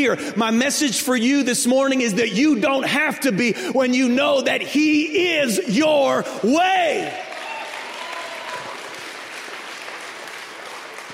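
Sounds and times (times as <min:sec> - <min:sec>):
speech: 0:00.0 - 0:07.3
audience applause: 0:07.2 - 0:11.1.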